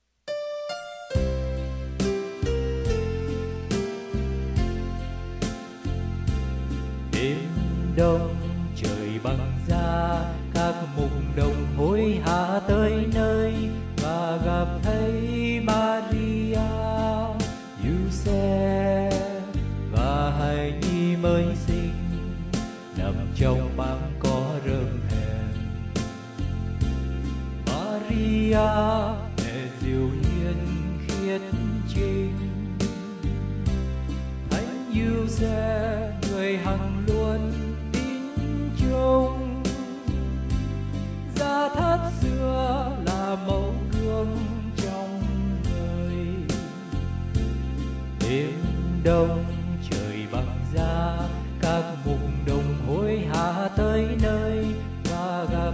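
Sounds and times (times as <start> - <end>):
bass: 1.1 - 55.7.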